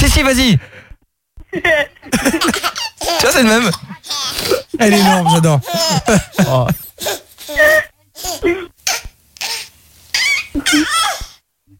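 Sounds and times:
speech: 0:00.2 - 0:00.8, 0:01.5 - 0:07.8, 0:08.4 - 0:08.7, 0:10.6 - 0:11.1
laughter: 0:01.5 - 0:04.0, 0:04.8 - 0:07.2
baby vocalizing: 0:02.6 - 0:10.5.

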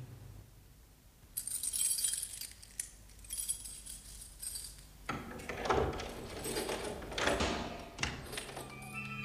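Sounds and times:
keys jingling and scraping in a lock: 0:01.4 - 0:09.1
lock clunk: 0:05.1 - 0:08.8
door rattling and scraping as pushed open: 0:05.1 - 0:09.0.

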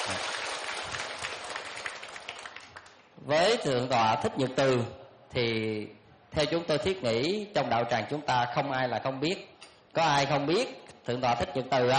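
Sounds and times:
crowd at a Buddhist retreat applauding: 0:00.0 - 0:03.0
speech: 0:00.1 - 0:00.4, 0:03.2 - 0:11.9.

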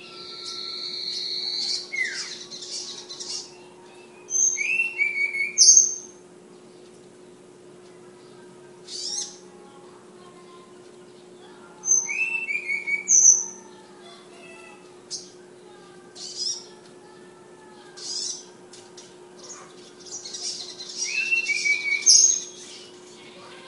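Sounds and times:
flowerpecker song: 0:00.0 - 0:23.6.

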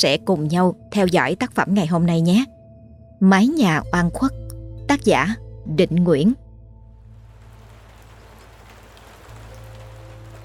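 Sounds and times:
speech: 0:00.0 - 0:02.6, 0:03.2 - 0:06.4
cold drizzling rain: 0:06.9 - 0:10.4.

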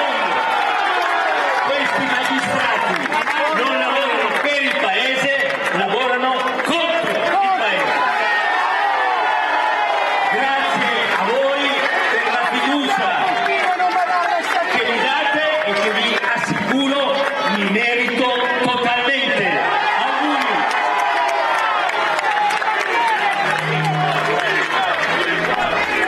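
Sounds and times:
crowd of supporters applauding outside the Tribunale di Milano: 0:00.0 - 0:26.0
crowd of supporters chanting outside the Tribunale di Milano: 0:21.6 - 0:26.0.

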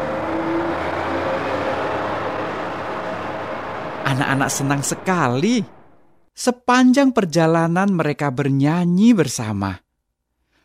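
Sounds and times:
bus carrying schoolchildren pulling away, engine rumbling with faint whine: 0:00.0 - 0:06.3
speech: 0:04.1 - 0:05.8, 0:06.4 - 0:09.8.

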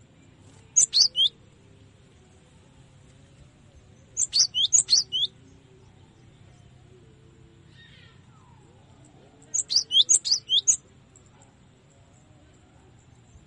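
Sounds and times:
cinereous tit song for training cage birds: 0:00.8 - 0:01.4, 0:04.2 - 0:05.3, 0:09.5 - 0:10.8.

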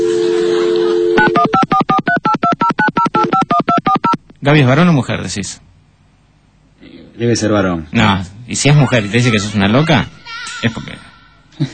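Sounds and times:
steady low telephone dial tone: 0:00.0 - 0:04.2
dual-pitched telephone keypad beeps as a number is dialed: 0:01.2 - 0:04.2
speech: 0:04.4 - 0:05.7, 0:07.2 - 0:11.7.

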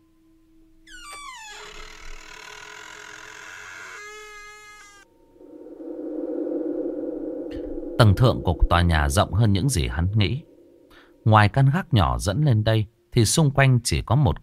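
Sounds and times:
rooftop door of a building creaking open: 0:00.9 - 0:05.1
loud steady rush of wind: 0:05.1 - 0:11.4
speech: 0:08.0 - 0:10.5, 0:11.2 - 0:14.4.

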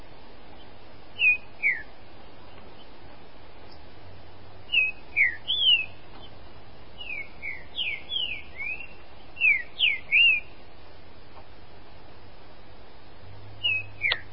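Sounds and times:
Green-winged Saltator song of bright whistled notes: 0:01.2 - 0:01.9, 0:04.7 - 0:06.4, 0:07.0 - 0:10.6, 0:13.6 - 0:14.3.

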